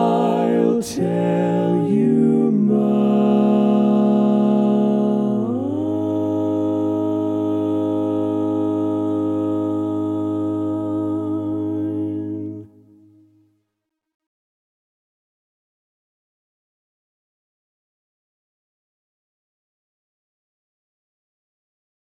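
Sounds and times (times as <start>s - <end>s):
a cappella lead vocal: 0.0s - 13.2s.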